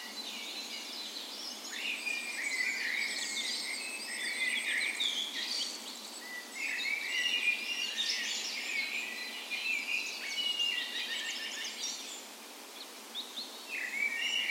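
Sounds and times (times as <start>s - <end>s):
soft hiss: 0.0s - 14.4s
songbirds singing in a dawn chorus: 0.0s - 14.4s.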